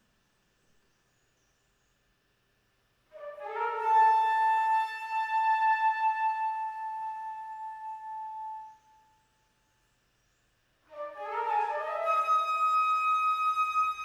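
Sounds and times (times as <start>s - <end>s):
flute: 3.1s - 9.3s, 10.9s - 14.0s.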